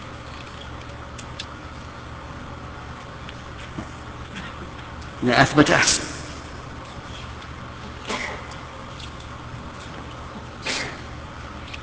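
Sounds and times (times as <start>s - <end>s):
steady low hum: 0.0s - 11.8s
speech: 5.2s - 6.1s
sneezes: 8.1s - 8.5s, 10.6s - 11.1s.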